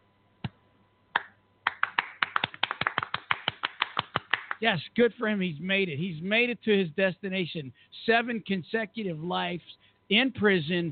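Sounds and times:
rhythmic hand clapping: 0.4s - 4.8s
speech: 4.6s - 10.9s.

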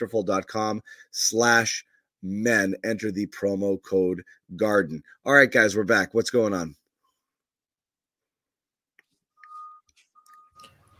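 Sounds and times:
speech: 0.0s - 6.8s
beeping: 9.3s - 10.9s.

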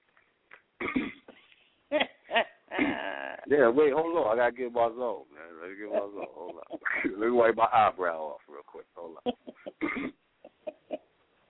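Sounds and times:
man clearing his throat: 0.8s - 1.3s, 9.8s - 10.2s
speech: 3.5s - 8.4s
laughter: 5.6s - 7.8s, 9.0s - 9.8s.

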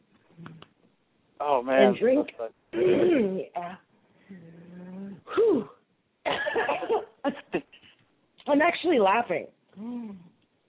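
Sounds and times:
speech: 1.6s - 3.5s, 9.0s - 9.6s
person coughing: 2.7s - 3.4s, 6.3s - 7.8s.

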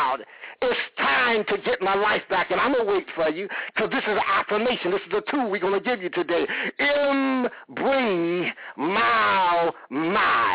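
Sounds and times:
speech: 0.2s - 10.5s
man groaning during a sermon: 8.4s - 10.5s.

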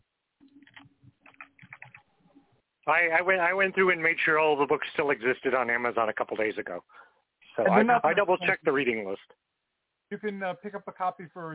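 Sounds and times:
typing on a computer keyboard: 0.5s - 2.1s
speech: 2.9s - 9.4s, 10.1s - 11.5s.

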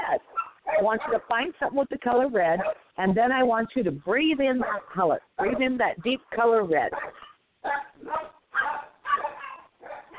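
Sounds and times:
dogs barking: 0.2s - 1.4s, 2.6s - 2.9s, 4.6s - 5.8s, 6.9s - 10.1s
speech: 0.8s - 7.8s.

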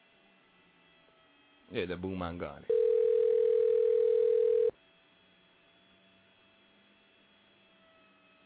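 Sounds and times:
speech: 1.7s - 2.8s
telephone dial tone: 2.7s - 4.7s.

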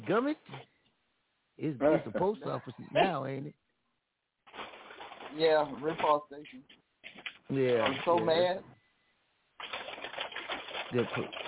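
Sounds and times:
speech: 0.0s - 0.7s, 1.6s - 3.6s, 5.3s - 6.8s, 7.5s - 8.8s, 10.9s - 11.4s
person vocally imitating an old cash register: 7.6s - 8.6s, 9.6s - 11.4s.

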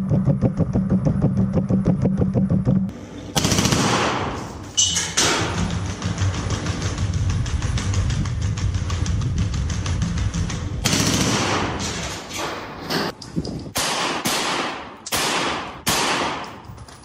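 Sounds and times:
low mechanical rumble: 0.0s - 11.8s
automatic weapon firing from robot dog: 3.4s - 4.4s, 10.8s - 11.8s, 13.8s - 16.6s
sharp loud shots: 3.4s - 4.5s, 10.8s - 11.8s, 13.8s - 16.5s.

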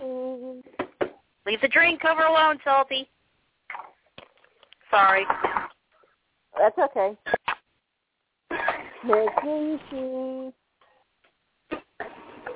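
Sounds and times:
baby cooing and babbling: 0.0s - 0.7s, 9.1s - 10.6s
speech: 1.5s - 3.2s, 4.9s - 5.6s, 6.6s - 7.4s, 9.0s - 10.6s.

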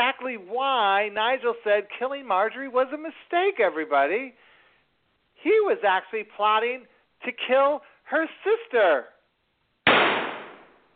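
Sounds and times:
speech: 0.0s - 4.5s, 5.4s - 9.2s
gunshot sound effect: 9.8s - 10.9s.

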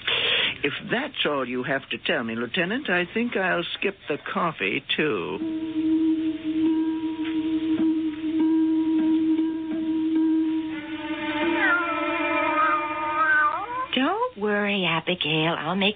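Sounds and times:
speech: 0.6s - 6.1s, 14.4s - 15.9s
steady tonal background: 5.4s - 14.1s
cat meowing: 10.8s - 14.0s.

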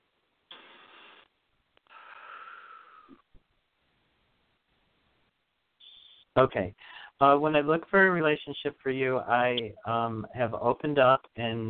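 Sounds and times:
person breathing in through the nose and out through the mouth: 1.8s - 3.3s, 6.8s - 7.2s
speech: 6.4s - 11.6s.

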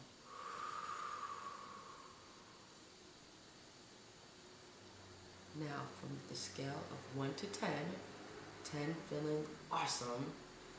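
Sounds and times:
long exhale after a deep breath in: 0.2s - 2.8s
speech: 5.5s - 10.5s.

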